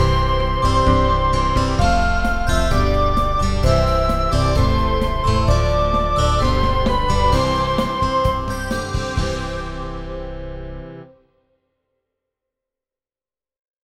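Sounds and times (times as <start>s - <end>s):
instrumental music: 0.0s - 11.2s.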